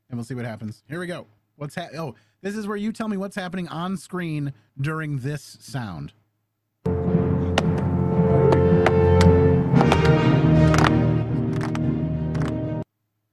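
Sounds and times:
speech: 0.1 - 6.2
slow clap from a film scene: 7.5 - 12.8.

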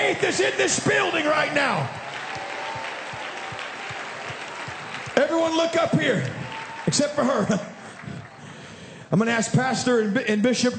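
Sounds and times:
speech: 0.2 - 2.2, 5.2 - 7.7, 9.1 - 10.7
audience clapping hands: 0.7 - 8.7.

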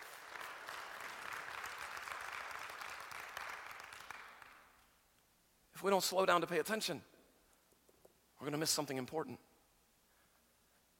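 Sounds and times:
audience hand clapping: 0.0 - 5.0
speech: 5.8 - 7.1, 8.4 - 9.5.

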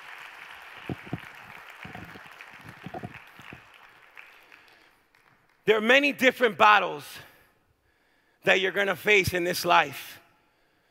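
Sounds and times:
crowd applause: 0.0 - 5.3
speech: 0.9 - 1.2, 5.7 - 7.3, 8.4 - 10.2.

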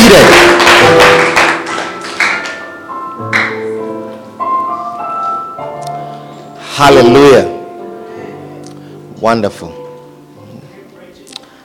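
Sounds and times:
audience clapping: 0.0 - 2.7, 3.3 - 3.6
speech: 6.8 - 7.5, 9.2 - 9.8.

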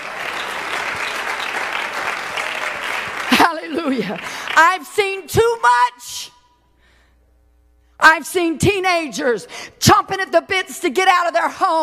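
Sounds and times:
audience clapping: 0.0 - 4.8
speech: 3.8 - 6.4, 8.0 - 11.8.

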